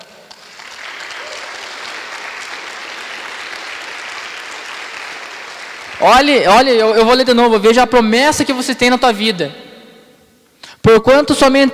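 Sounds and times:
applause: 0.0s - 6.3s
speech: 6.0s - 9.6s, 10.9s - 11.7s.

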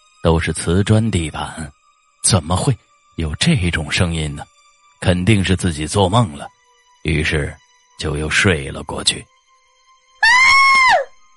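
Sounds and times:
speech: 0.2s - 9.3s
scream: 10.2s - 11.1s.

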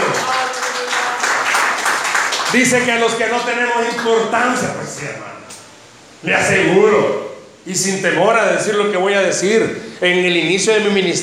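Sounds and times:
applause: 0.0s - 4.1s
speech: 2.5s - 5.5s, 6.2s - 11.2s.

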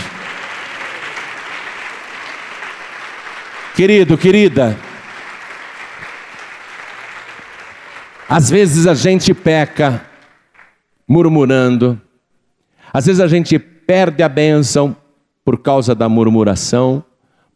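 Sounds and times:
audience applauding: 0.0s - 10.8s
speech: 3.8s - 4.9s, 8.3s - 10.1s, 11.1s - 12.0s, 12.9s - 17.1s.

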